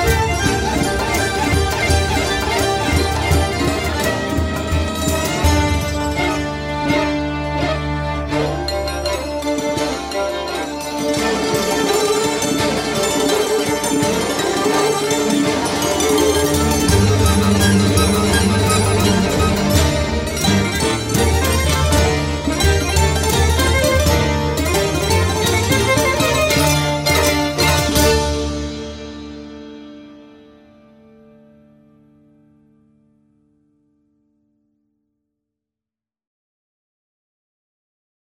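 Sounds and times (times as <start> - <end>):
kamancheh playing: 0.0 - 30.3.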